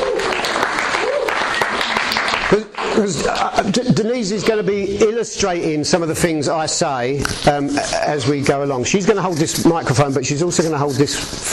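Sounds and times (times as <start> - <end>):
audience applauding as a speaker comes on stage: 0.0 - 4.2
speech: 2.5 - 11.5.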